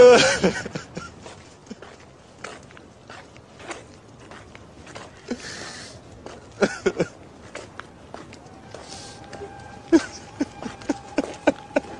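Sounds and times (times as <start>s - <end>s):
pianist crying while walking: 0.0s - 0.8s, 9.9s - 11.9s
laughter: 0.0s - 2.0s, 6.5s - 7.3s, 9.4s - 11.9s.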